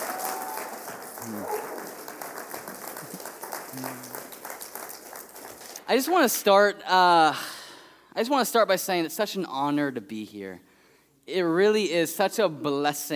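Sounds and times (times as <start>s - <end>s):
church congregation applauding a guest pastor: 0.0s - 6.3s
speech: 1.2s - 1.6s, 3.8s - 4.1s, 5.9s - 7.5s, 8.2s - 10.7s, 11.3s - 13.1s.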